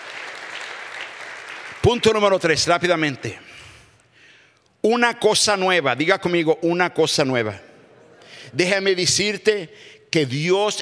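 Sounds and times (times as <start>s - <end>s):
audience applauding: 0.0s - 2.4s
speech: 1.8s - 3.6s, 4.8s - 7.7s, 8.4s - 10.8s.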